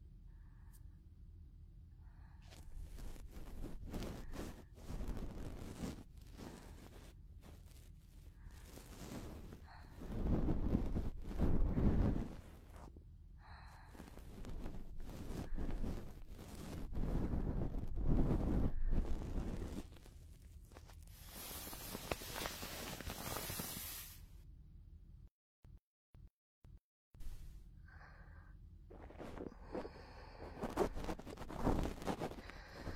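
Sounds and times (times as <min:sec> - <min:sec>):
breathing: 0:00.3 - 0:01.0, 0:02.0 - 0:04.7, 0:06.3 - 0:07.0, 0:08.3 - 0:19.8, 0:27.3 - 0:32.9
close-up ear cleaning scratching and rubbing: 0:02.8 - 0:12.6, 0:13.9 - 0:24.2, 0:28.9 - 0:32.9.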